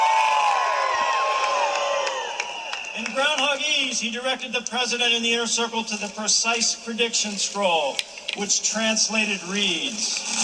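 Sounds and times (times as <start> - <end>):
whoops and high shouts: 0.0 - 3.2
crowd cheering for Punxsutawney Phil on Groundhog Day: 0.0 - 4.3
speech: 3.1 - 10.4.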